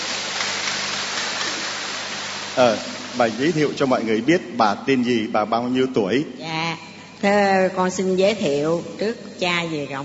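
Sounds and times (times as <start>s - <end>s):
applause: 0.0s - 2.2s
speech: 2.6s - 6.5s, 7.2s - 10.0s.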